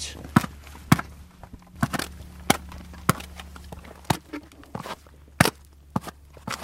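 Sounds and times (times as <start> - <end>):
horse hoof striking to break ice: 0.3 - 6.6.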